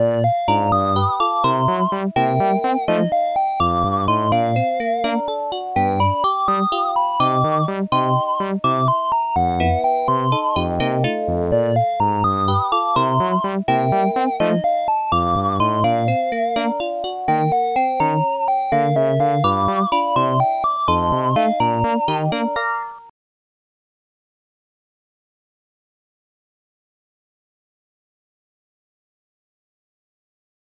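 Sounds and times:
tune: 0.0 - 23.1.

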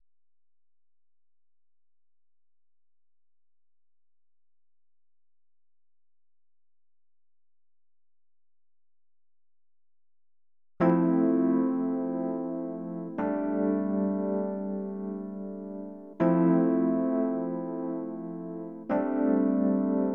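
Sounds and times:
synthesizer: 10.8 - 20.1.

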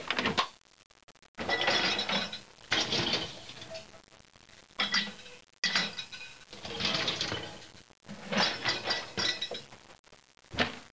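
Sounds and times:
dishwasher running: 1.4 - 3.8, 4.8 - 9.7.

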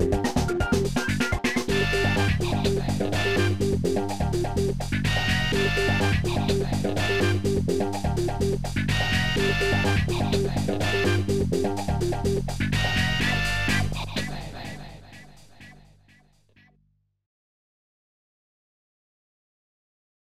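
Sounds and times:
funk music: 0.0 - 15.8.

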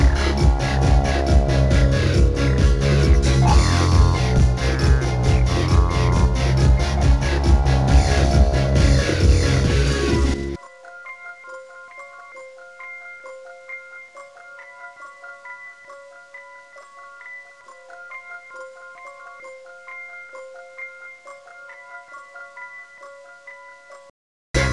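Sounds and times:
beat: 0.0 - 10.6.

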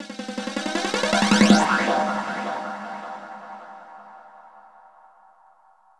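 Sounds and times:
ambient drum loop: 0.0 - 3.9.

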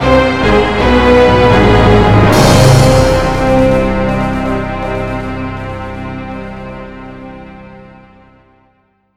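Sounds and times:
midi test music: 0.0 - 8.4.

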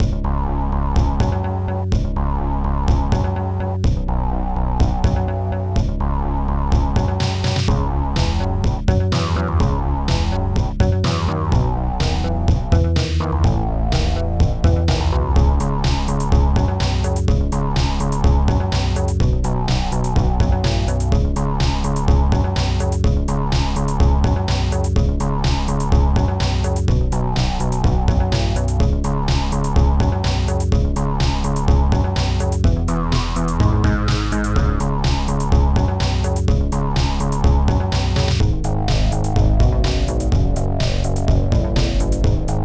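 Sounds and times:
music: 0.0 - 42.6.

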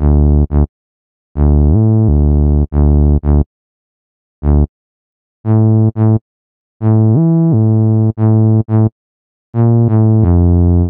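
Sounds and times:
bass line: 0.0 - 0.7, 1.4 - 3.5, 4.4 - 4.7, 5.5 - 6.2, 6.8 - 8.9, 9.6 - 10.8.

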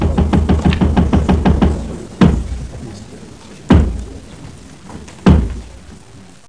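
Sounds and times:
knocks: 0.0 - 2.7, 3.7 - 4.2, 4.9 - 5.7.

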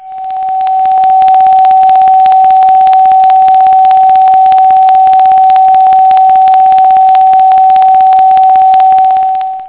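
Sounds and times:
one kHz tone: 0.0 - 9.6.

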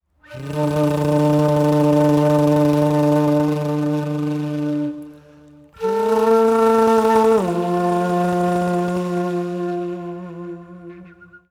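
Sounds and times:
ethnic flute melody at 125 BPM: 0.2 - 11.5.

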